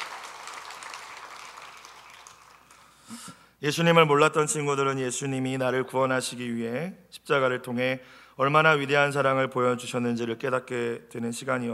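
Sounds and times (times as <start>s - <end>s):
audience applause: 0.0s - 3.0s
speech: 3.1s - 11.7s.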